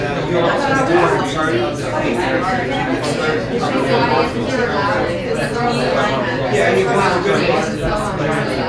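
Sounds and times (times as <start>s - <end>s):
restaurant background noise: 0.0s - 8.6s.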